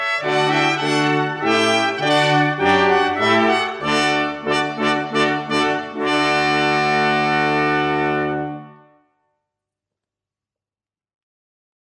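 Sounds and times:
minuet: 0:00.0 - 0:09.0.

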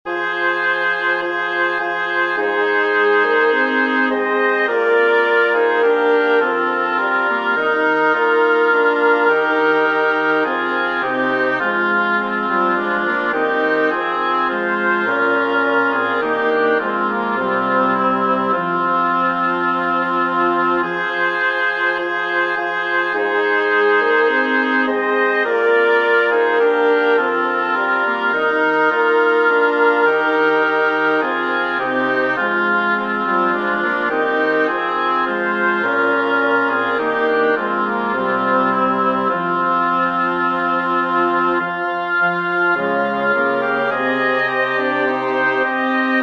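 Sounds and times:
double reed quartet: 0:00.1 - 0:46.2.

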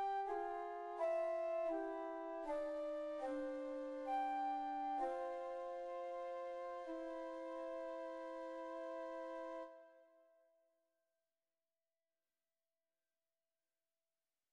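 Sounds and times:
two flutes playing andante tranquillo: 0:00.0 - 0:09.8.

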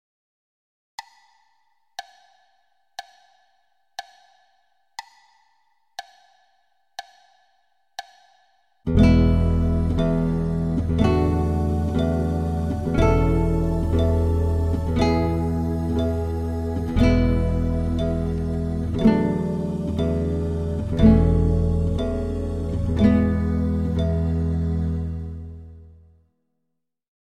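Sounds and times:
guitar: 0:08.9 - 0:26.1.

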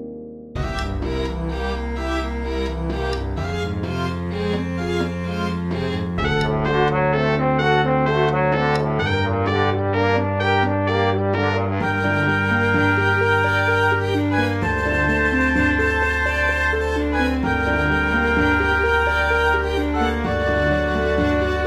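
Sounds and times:
orchestral fantasy piece: 0:00.6 - 0:21.6.

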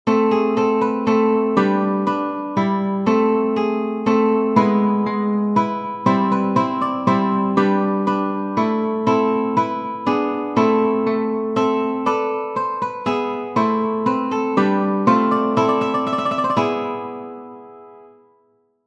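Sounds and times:
minuet: 0:00.3 - 0:17.7.

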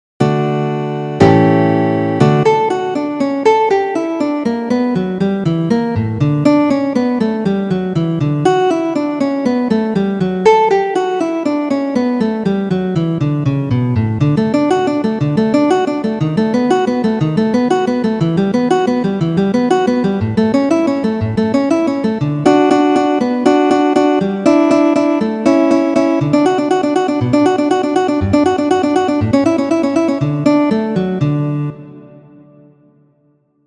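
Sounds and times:
prelude music: 0:00.2 - 0:33.4.

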